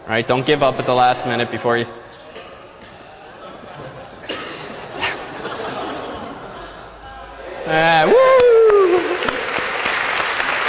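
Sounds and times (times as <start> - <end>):
speech: 0.1 - 2.1, 7.7 - 8.5
laughter: 2.9 - 9.7
room full of people clapping: 8.0 - 10.6.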